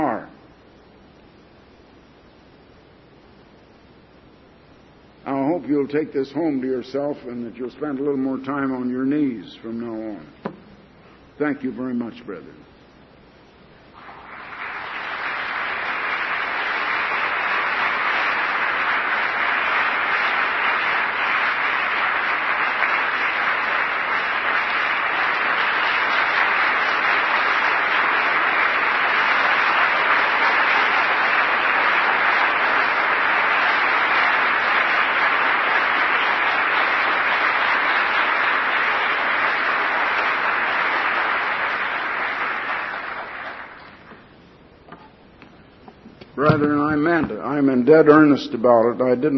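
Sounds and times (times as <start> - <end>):
speech: 5.6 - 10.6, 11.4 - 12.7, 46.6 - 49.3
audience applause: 14.0 - 44.2.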